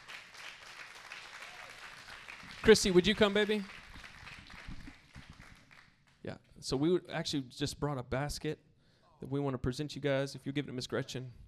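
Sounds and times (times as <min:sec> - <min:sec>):
audience applause: 0:00.0 - 0:05.9
speech: 0:02.6 - 0:03.8, 0:06.6 - 0:11.4.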